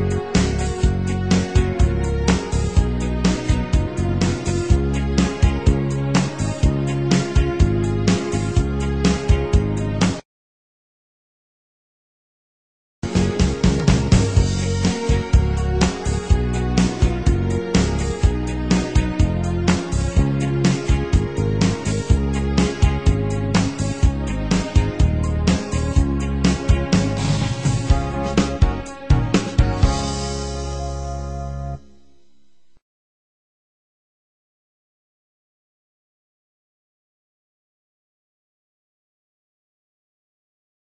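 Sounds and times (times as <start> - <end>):
instrumental music beat: 0.0 - 10.2, 13.0 - 32.8.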